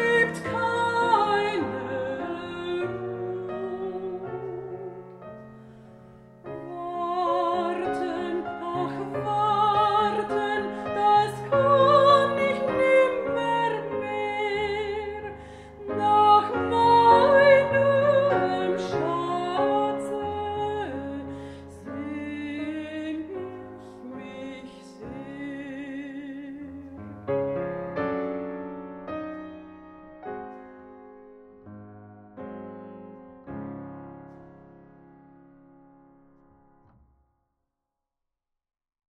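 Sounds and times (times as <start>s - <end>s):
person singing in romantic style: 0.0s - 5.2s, 6.5s - 27.4s
piano in romantic style: 0.0s - 37.4s.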